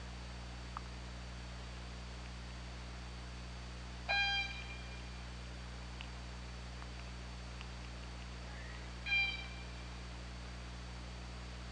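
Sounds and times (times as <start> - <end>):
hum: 0.0 - 11.7
orca calls: 8.6 - 9.7.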